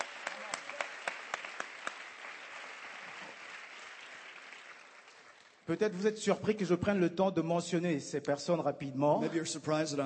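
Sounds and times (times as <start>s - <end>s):
audience applause: 0.0s - 6.0s
speech: 5.7s - 10.0s.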